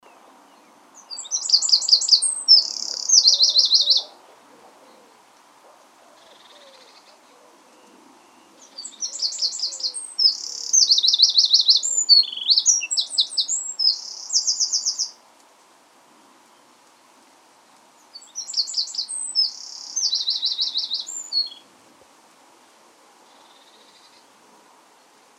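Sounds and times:
Eurasian wren singing: 1.0 - 4.2, 8.6 - 15.2, 18.2 - 21.6.

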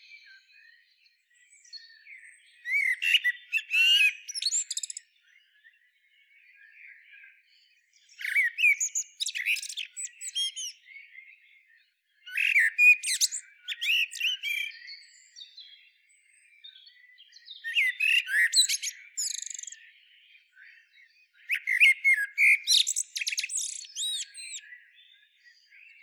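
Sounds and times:
common blackbird singing: 0.0 - 26.0
faint background chirping: 0.0 - 26.0.

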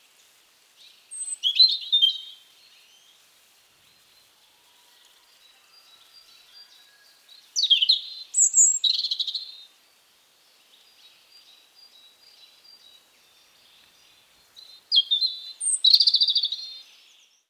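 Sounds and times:
European robin singing: 0.8 - 3.2, 7.3 - 9.7, 10.7 - 17.4.

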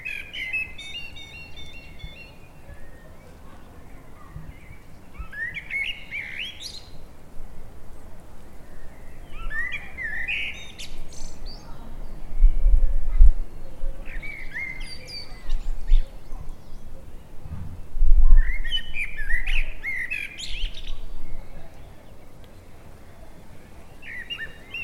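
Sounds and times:
Eurasian blackbird singing: 0.0 - 7.3, 7.9 - 24.8
background hiss: 0.0 - 24.8
low thumping: 17.4 - 18.4.

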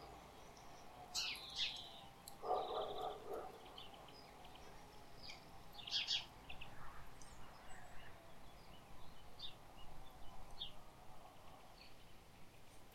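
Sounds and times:
great tit Parus major calls: 0.0 - 7.6.

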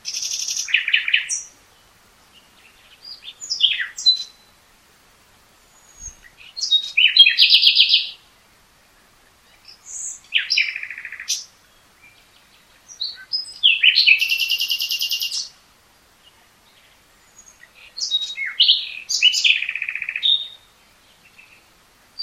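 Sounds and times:
common nightingale singing trills and whistles: 2.3 - 4.5, 5.7 - 8.2, 9.5 - 15.5, 16.7 - 22.2.

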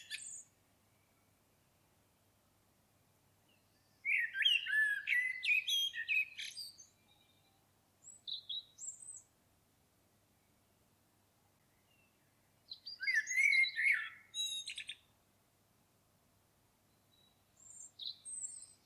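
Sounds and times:
common blackbird singing: 0.0 - 0.5, 3.5 - 9.3, 11.7 - 15.1, 16.9 - 18.8.

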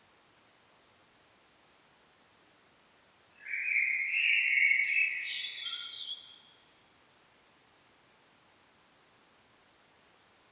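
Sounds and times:
common blackbird singing: 3.4 - 6.4.

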